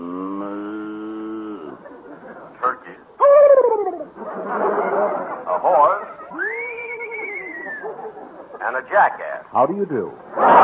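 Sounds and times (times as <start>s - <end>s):
cow mooing on a farm: 0.0s - 1.8s
laughter: 1.6s - 9.0s, 10.3s - 10.6s
speech: 8.8s - 10.6s.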